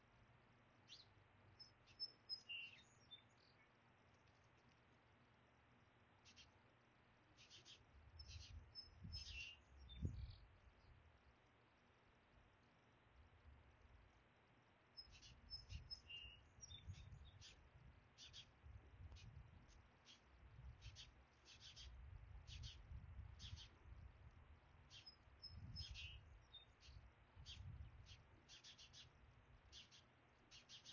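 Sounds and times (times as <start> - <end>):
birds singing in Wallingford: 0.8 - 3.8, 6.2 - 6.6, 7.4 - 11.0, 15.0 - 23.8, 24.9 - 30.9.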